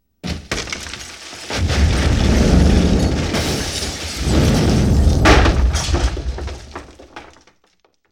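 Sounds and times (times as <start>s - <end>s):
explosion: 1.4s - 7.3s.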